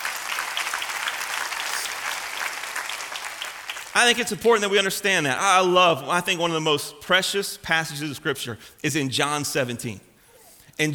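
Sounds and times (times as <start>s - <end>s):
audience clapping hands: 0.0s - 4.4s
speech: 4.0s - 10.1s, 10.8s - 10.9s.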